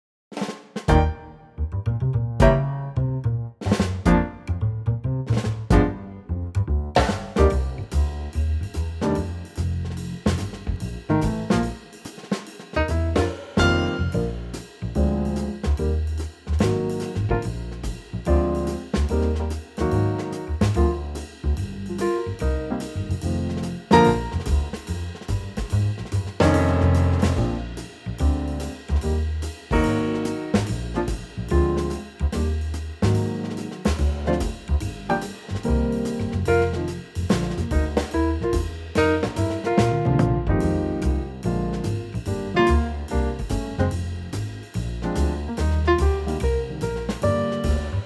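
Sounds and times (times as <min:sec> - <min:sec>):
B flat instrumental trio: 0:00.3 - 0:48.0.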